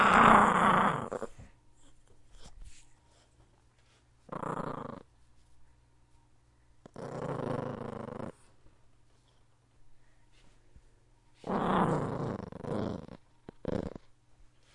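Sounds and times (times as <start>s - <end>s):
dog growling: 0.0s - 1.5s, 4.3s - 5.1s, 6.9s - 8.5s, 11.4s - 14.1s
quiet hum: 0.0s - 14.7s.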